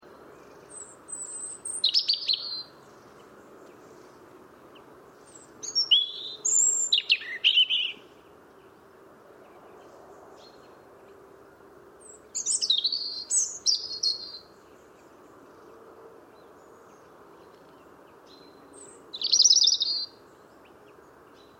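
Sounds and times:
European robin singing high twitters: 0.4 - 3.3, 4.7 - 8.7, 12.0 - 15.7, 16.4 - 21.5.

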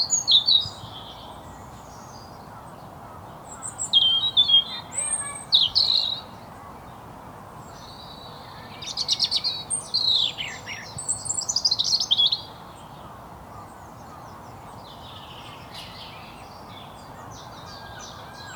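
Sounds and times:
European robin singing: 0.0 - 2.7, 3.4 - 6.5, 7.7 - 18.5.

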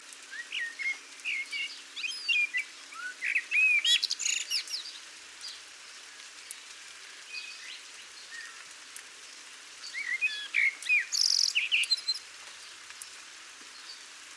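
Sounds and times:
Common blackbird calling: 0.3 - 4.8, 9.9 - 12.2.

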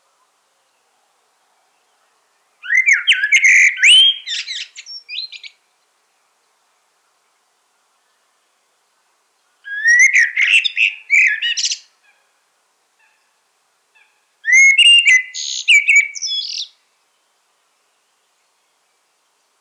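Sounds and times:
common blackbird singing: 2.6 - 5.6, 9.7 - 11.9, 14.0 - 16.8.

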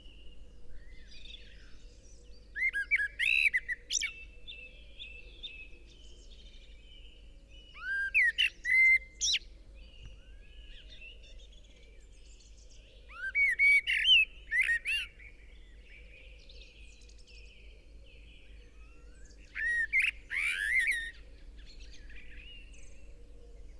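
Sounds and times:
soft bird chatter: 0.0 - 23.7
Eurasian blackbird singing: 2.6 - 5.7, 7.7 - 11.2, 13.1 - 15.2, 18.1 - 23.7.

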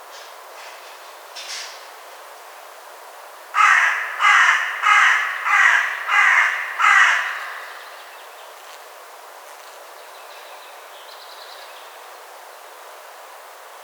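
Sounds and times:
carrion crow cawing: 3.6 - 8.1.

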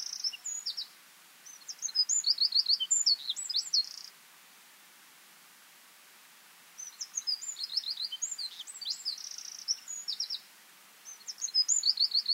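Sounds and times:
Eurasian wren Troglodytes troglodytes song: 0.0 - 4.2, 6.7 - 12.3.

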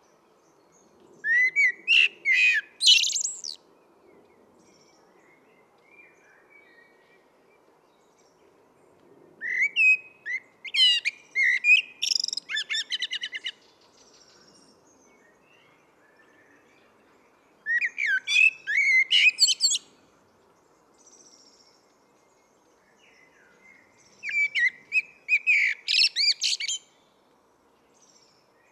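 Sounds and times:
common blackbird singing: 1.2 - 3.6, 9.4 - 19.9, 22.8 - 26.9.

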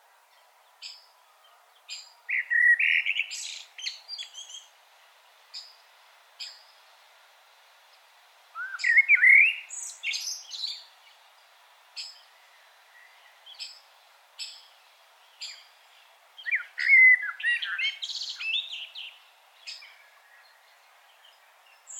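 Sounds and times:
common blackbird song fluting and twitter: 0.3 - 4.7, 6.4 - 6.8, 8.6 - 11.2, 12.0 - 21.9.

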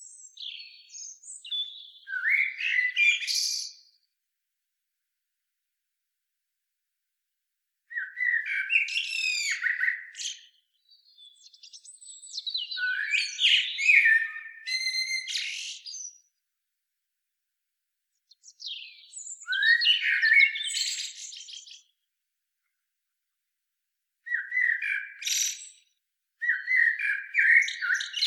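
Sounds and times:
common blackbird Turdus merula song: 0.0 - 4.2, 7.9 - 16.5, 18.1 - 22.8, 24.2 - 28.2.

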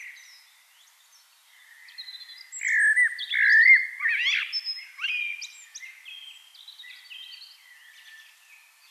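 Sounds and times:
Eurasian blackbird Turdus merula singing: 0.0 - 8.8.

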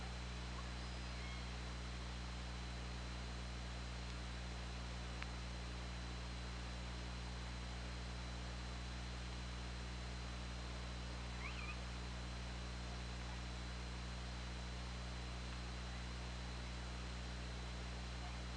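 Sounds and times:
low droning hum: 0.0 - 18.5
killer whale call: 11.4 - 11.8.

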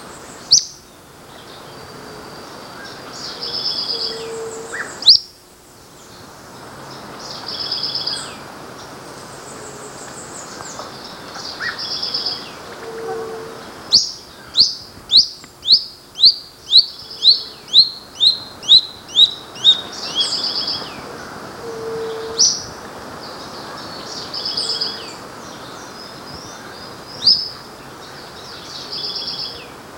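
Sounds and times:
background hiss: 0.0 - 29.9
bird calls: 2.4 - 5.2, 9.5 - 29.8.

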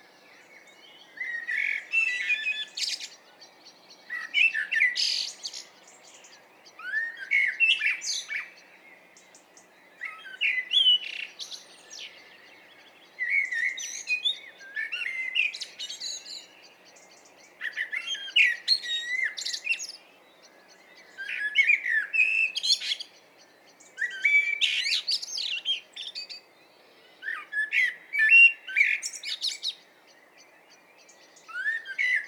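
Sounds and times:
common blackbird song: 0.0 - 32.2.

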